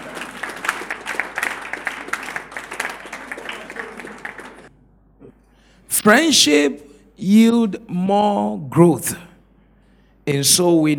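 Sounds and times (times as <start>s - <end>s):
audience clapping: 0.0s - 4.7s
speech: 6.0s - 9.2s, 10.3s - 10.9s.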